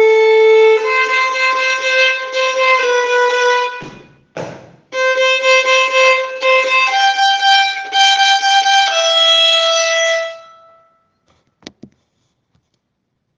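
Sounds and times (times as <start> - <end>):
first violin: 0.0 - 4.2, 4.9 - 10.8.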